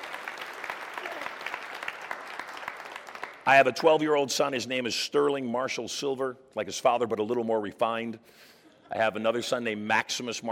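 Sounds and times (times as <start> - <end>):
audience applause: 0.0 - 3.5
speech: 3.4 - 10.4.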